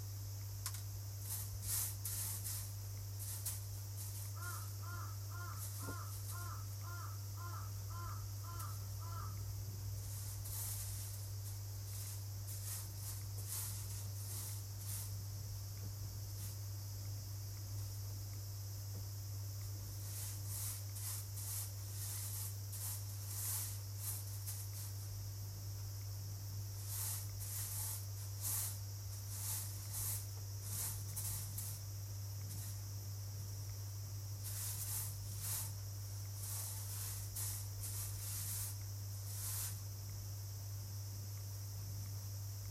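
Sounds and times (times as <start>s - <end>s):
steady fan hum: 0.0s - 40.6s
cicadas whining: 0.0s - 42.6s
grainy rustles of hand-sorting wheat: 1.2s - 16.8s, 19.7s - 25.2s, 26.7s - 32.9s, 34.3s - 40.0s.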